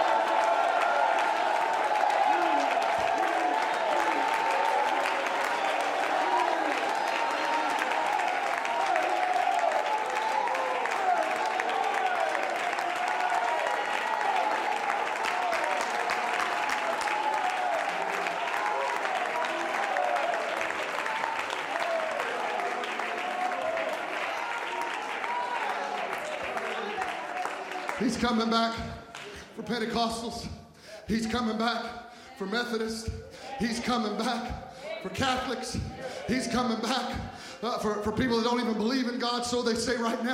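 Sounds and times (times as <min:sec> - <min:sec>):
people shouting praise: 0:00.0 - 0:28.4
large audience applauding: 0:00.0 - 0:29.5
speech: 0:28.1 - 0:28.9, 0:29.6 - 0:40.3.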